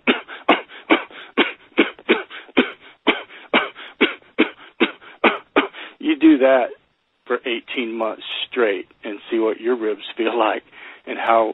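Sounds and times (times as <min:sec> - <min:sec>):
person with a chronic cough coughing: 0:00.0 - 0:05.8
speech: 0:06.1 - 0:11.5.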